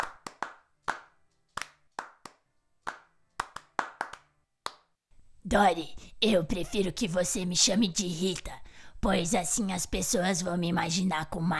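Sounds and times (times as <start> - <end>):
hands clapping: 0.0 - 4.9
speech: 5.5 - 11.5.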